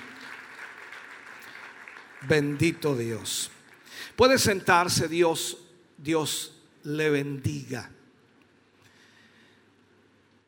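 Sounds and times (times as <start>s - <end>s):
audience applauding: 0.0s - 4.0s
speech: 2.2s - 8.0s.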